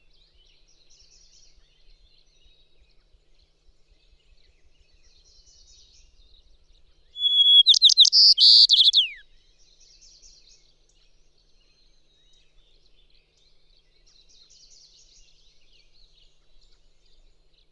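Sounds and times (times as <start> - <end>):
White-crowned Sparrow calling: 7.2 - 9.2.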